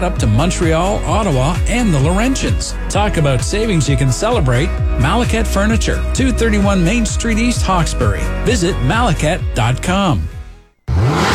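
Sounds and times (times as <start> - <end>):
speech: 0.0 - 10.3
car engine revving: 10.9 - 11.3.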